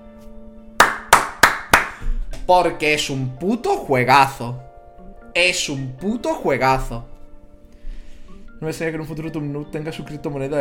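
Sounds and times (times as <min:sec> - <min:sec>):
hand claps: 0:00.8 - 0:02.5
speech: 0:02.5 - 0:04.6, 0:05.4 - 0:07.1, 0:08.6 - 0:10.5.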